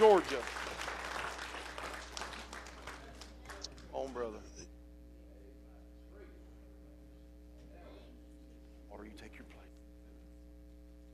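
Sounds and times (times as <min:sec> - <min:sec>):
speech: 0:00.0 - 0:00.7, 0:04.2 - 0:04.7
audience applause: 0:00.0 - 0:04.2.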